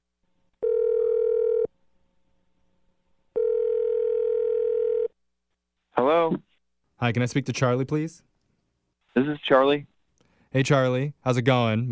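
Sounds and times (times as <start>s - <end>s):
long steady telephone tones: 0.6s - 1.7s, 3.4s - 5.2s
speech: 7.0s - 8.3s, 9.2s - 9.9s, 10.5s - 11.8s.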